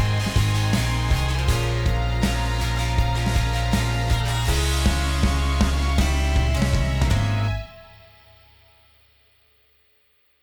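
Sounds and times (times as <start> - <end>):
instrumental backing track: 0.0 - 8.0.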